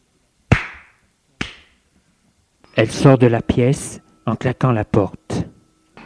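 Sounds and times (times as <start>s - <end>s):
slaps across a face: 0.5s - 1.8s
speech: 2.8s - 5.5s.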